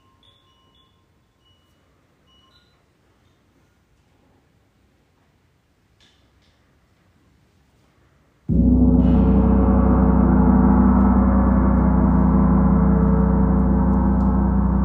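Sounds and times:
gong struck and ringing: 8.5s - 14.8s.

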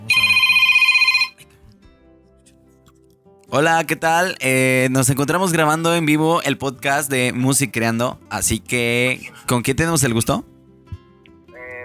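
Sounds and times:
telephone ringing with an incoming call, electronic trill: 0.0s - 1.4s
speech: 3.5s - 10.5s.

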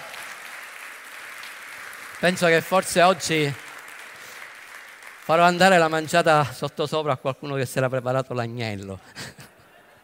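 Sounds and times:
audience applause: 0.0s - 6.7s
speech: 2.2s - 3.6s, 5.3s - 9.3s
laughter: 9.0s - 10.0s.

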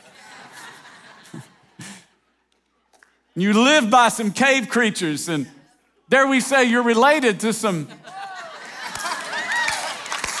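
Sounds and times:
laughter: 0.0s - 2.3s, 7.7s - 10.3s
speech: 3.4s - 8.0s
audience clapping and cheering: 8.1s - 10.3s.

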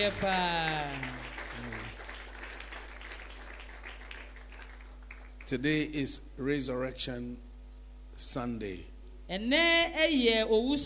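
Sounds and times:
speech: 0.0s - 1.1s, 5.5s - 7.5s, 8.2s - 10.8s
audience applauding: 0.0s - 5.5s.

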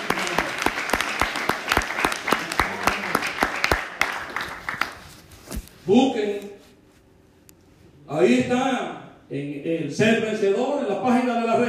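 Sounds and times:
audience applause: 0.0s - 5.0s
speech: 5.9s - 6.5s, 8.1s - 11.6s.

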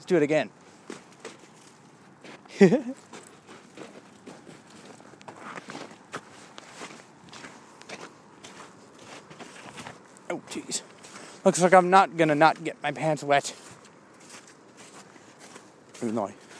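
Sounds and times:
speech: 0.0s - 0.6s, 2.6s - 3.1s, 10.3s - 10.8s, 11.4s - 13.6s, 16.0s - 16.4s
footsteps crunching on packed snow: 0.6s - 16.5s
laughter: 2.5s - 3.1s.

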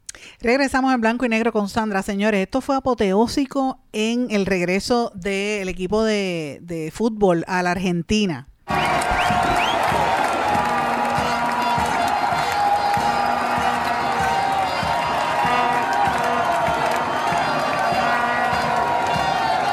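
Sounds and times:
speech: 0.4s - 9.0s
large crowd applauding: 8.7s - 19.7s
voices shouting: 8.7s - 19.7s.

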